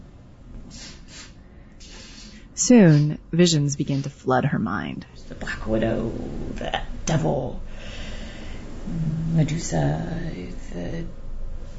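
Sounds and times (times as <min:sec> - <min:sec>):
low hum: 0:00.0 - 0:11.7
ketamine nasal spray hissing puffs: 0:00.7 - 0:03.2
speech: 0:02.6 - 0:07.7, 0:08.9 - 0:11.2.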